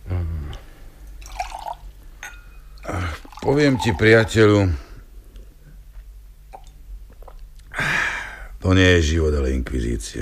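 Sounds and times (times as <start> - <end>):
drink being poured: 1.1 - 4.4
speech: 3.4 - 4.8, 8.7 - 10.2.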